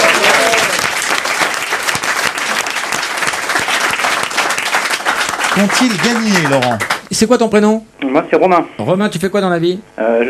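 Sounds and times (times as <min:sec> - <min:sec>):
audience applause: 0:00.0 - 0:07.1
speech: 0:05.6 - 0:10.2.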